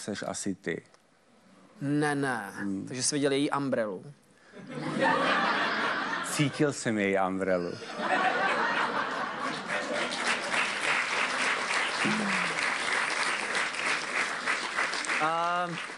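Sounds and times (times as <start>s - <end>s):
speech: 0.0s - 1.0s, 1.8s - 5.4s, 6.4s - 8.3s, 12.0s - 12.4s, 15.2s - 15.9s
laughter: 4.6s - 6.7s, 7.8s - 10.5s
audience applause: 8.4s - 15.9s.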